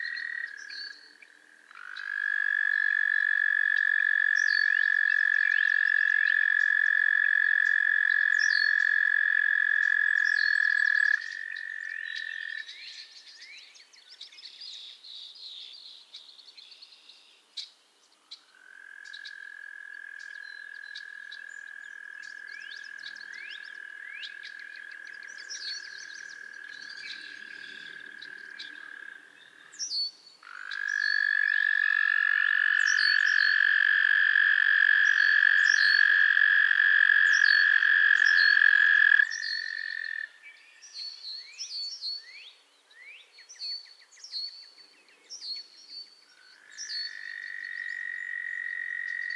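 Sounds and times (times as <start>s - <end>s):
frog chorus chirping and trilling: 0.0s - 13.6s, 18.3s - 42.5s, 43.6s - 49.3s.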